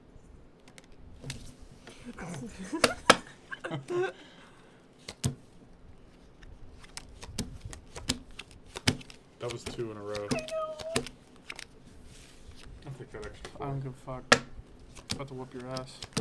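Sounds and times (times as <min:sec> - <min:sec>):
laughter: 0:02.1 - 0:04.4
speech: 0:02.2 - 0:04.3, 0:09.4 - 0:10.6, 0:13.0 - 0:14.5, 0:15.1 - 0:16.1
playing cards slapped down onto a table: 0:02.8 - 0:03.2, 0:06.9 - 0:11.6, 0:14.3 - 0:16.1.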